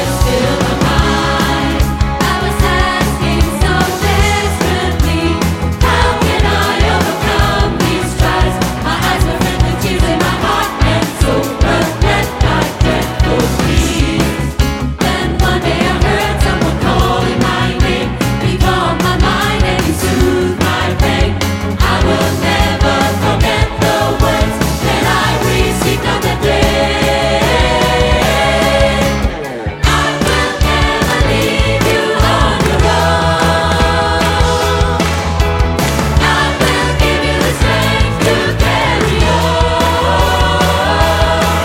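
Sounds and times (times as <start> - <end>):
gospel choir singing: 0.0 - 41.6.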